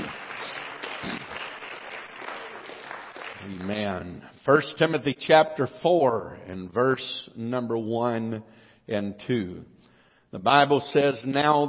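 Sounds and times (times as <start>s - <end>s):
audience applauding, hand clapping: 0.0s - 4.0s
speech: 4.4s - 11.6s.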